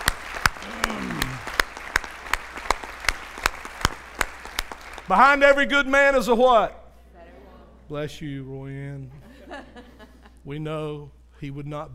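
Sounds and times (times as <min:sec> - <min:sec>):
audience clapping in unison: 0:00.0 - 0:05.5
speech: 0:05.1 - 0:06.8, 0:07.9 - 0:09.8, 0:10.4 - 0:11.9
laughter: 0:09.1 - 0:10.4.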